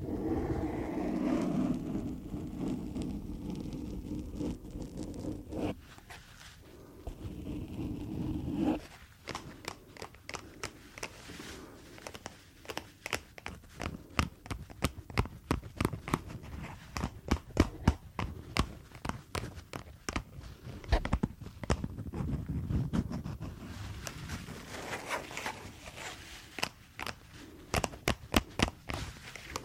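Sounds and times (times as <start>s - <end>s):
gloves rustling when handled and rubbed: 0.8s - 29.6s.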